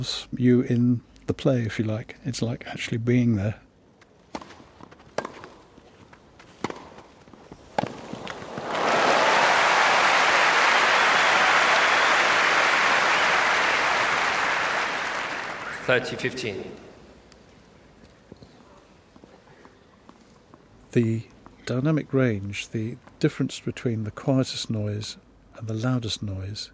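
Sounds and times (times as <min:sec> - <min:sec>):
speech: 0:00.0 - 0:03.6, 0:15.9 - 0:16.8, 0:21.0 - 0:26.7
cheering crowd applauding: 0:08.2 - 0:16.4.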